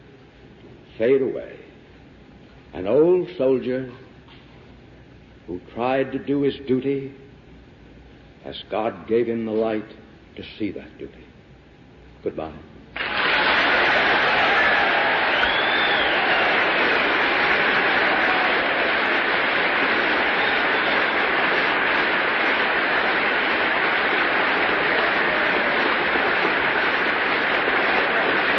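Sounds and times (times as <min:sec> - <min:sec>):
speech: 0:01.0 - 0:01.6, 0:02.7 - 0:04.0, 0:05.5 - 0:07.2, 0:08.4 - 0:11.3, 0:12.2 - 0:12.8
audience applause and cheering: 0:13.0 - 0:28.5.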